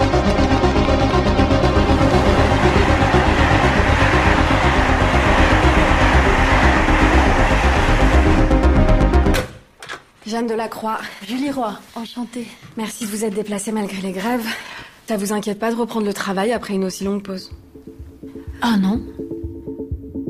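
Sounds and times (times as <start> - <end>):
regular rhythmic clatter of departing train: 0.2 - 9.1
speech: 10.4 - 18.0, 18.6 - 19.3.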